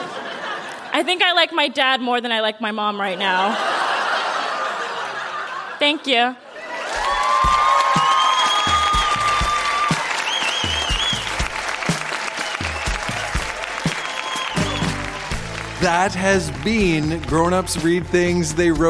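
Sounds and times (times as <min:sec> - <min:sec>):
laughter: 0:00.0 - 0:01.1, 0:03.2 - 0:07.2
speech: 0:01.0 - 0:03.8, 0:05.8 - 0:06.4, 0:15.8 - 0:18.8
whoops and cheers: 0:06.6 - 0:11.4, 0:12.2 - 0:15.3
crowd applauding: 0:06.6 - 0:18.5.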